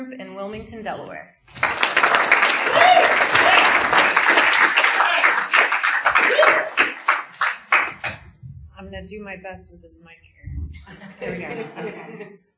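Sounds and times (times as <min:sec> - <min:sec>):
speech: 0:00.0 - 0:03.4, 0:08.9 - 0:12.5
audience applause at a Fairfax Speaker Group meeting in Wilmington, Delaware: 0:01.5 - 0:08.2
laughter: 0:10.7 - 0:12.4.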